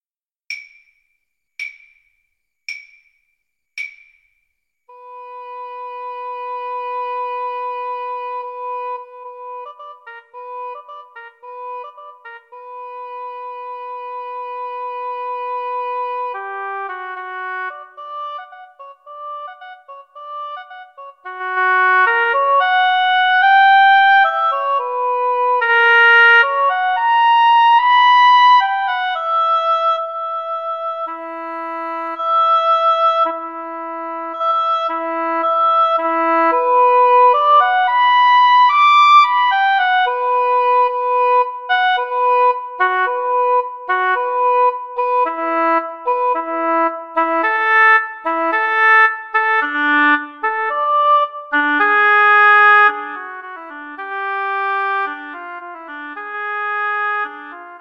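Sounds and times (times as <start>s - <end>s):
oboe duet: 4.9s - 57.7s.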